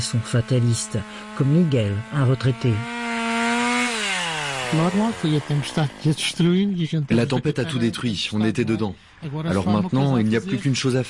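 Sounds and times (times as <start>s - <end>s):
speech: 0.0s - 3.0s, 4.7s - 11.0s
saws cutting storm-felled trees: 0.0s - 7.3s.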